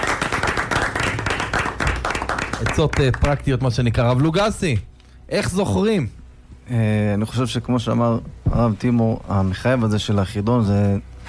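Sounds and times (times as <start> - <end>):
audience applause during a rabbinic study discussion: 0.0 - 3.4
speech: 2.6 - 11.2.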